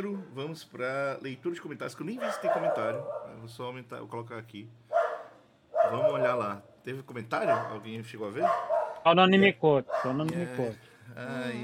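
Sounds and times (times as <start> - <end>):
speech: 0.0 - 4.8, 5.8 - 11.6
dog barking: 2.2 - 3.4, 4.9 - 6.4, 7.4 - 7.8, 8.4 - 9.0, 9.9 - 10.2.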